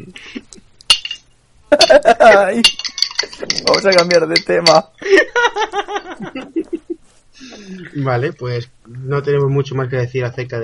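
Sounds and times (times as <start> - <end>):
teaspoons clinking: 0.9 - 2.0, 2.6 - 4.9
laughter: 1.7 - 2.4, 5.0 - 7.0
speech: 1.9 - 6.8, 7.4 - 10.6.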